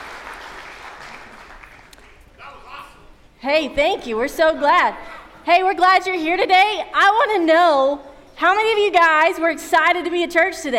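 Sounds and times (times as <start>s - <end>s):
audience applause: 0.0s - 2.2s
speech: 3.4s - 10.7s.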